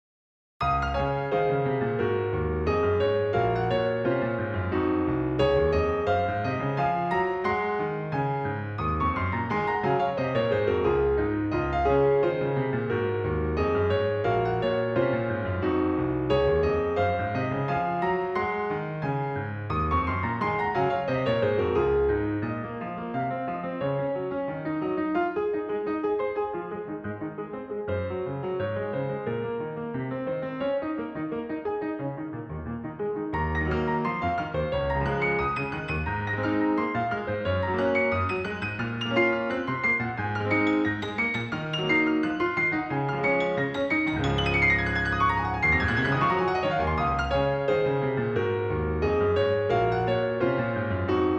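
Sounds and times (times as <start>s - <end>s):
piano piece in D-flat major: 0.6s - 51.3s.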